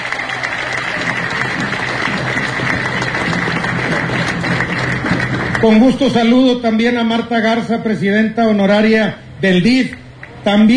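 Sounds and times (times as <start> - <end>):
audience applause: 0.0 - 6.0
speech: 5.6 - 10.7.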